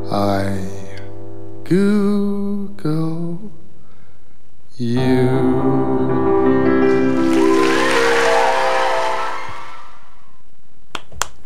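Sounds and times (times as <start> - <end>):
speech: 0.1 - 0.8, 1.7 - 3.6, 4.8 - 5.9
person clapping: 7.1 - 9.8, 10.9 - 11.4.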